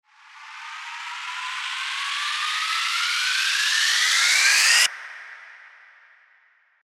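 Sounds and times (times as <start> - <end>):
riser sweep: 0.2 - 5.0.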